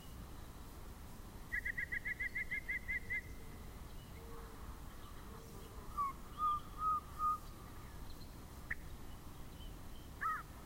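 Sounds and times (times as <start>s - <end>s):
yellow-breasted chat giving varied calls: 1.5s - 10.6s.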